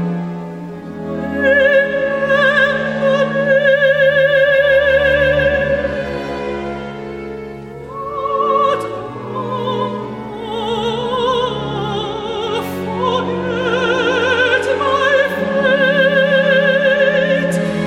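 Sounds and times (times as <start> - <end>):
baroque opera aria: 0.0 - 17.8.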